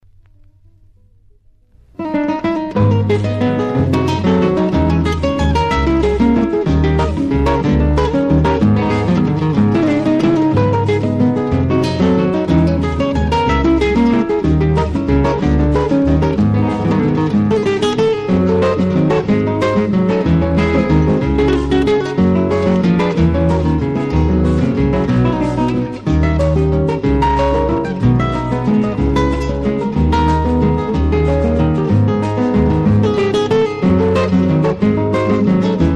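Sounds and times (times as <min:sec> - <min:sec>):
Creole waltz music: 0:02.8 - 0:35.9.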